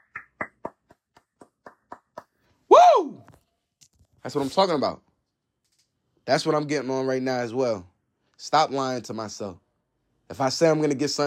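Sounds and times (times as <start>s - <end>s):
hand clap: 0.0s - 2.4s
speech: 4.2s - 5.1s, 6.3s - 9.6s, 10.3s - 11.2s.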